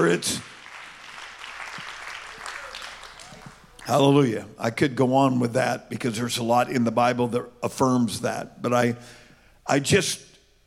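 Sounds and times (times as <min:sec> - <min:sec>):
church congregation clapping hands in praise: 0:00.0 - 0:04.2
speech: 0:00.1 - 0:00.5, 0:03.9 - 0:10.3.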